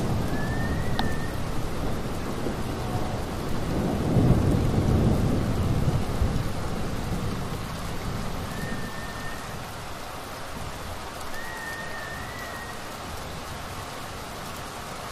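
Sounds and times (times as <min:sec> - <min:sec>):
steady rain in a thunderstorm: 0:00.0 - 0:15.1
thunder rumble: 0:00.0 - 0:15.1
thin whistling tones: 0:00.2 - 0:01.4, 0:08.5 - 0:09.7, 0:11.3 - 0:12.9.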